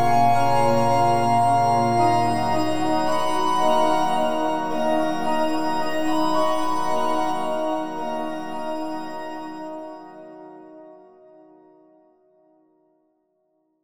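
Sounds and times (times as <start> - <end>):
chapel organ: 0.0 - 7.9.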